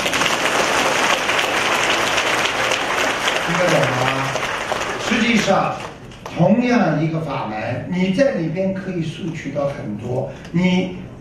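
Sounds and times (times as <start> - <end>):
audience clapping at a Buddhist dharma lecture: 0.0 - 6.4
speech: 5.3 - 11.0.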